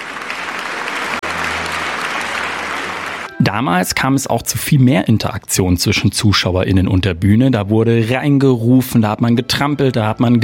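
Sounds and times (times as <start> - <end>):
audience applause after a theatre performance: 0.0 - 3.4
speech: 3.4 - 10.4.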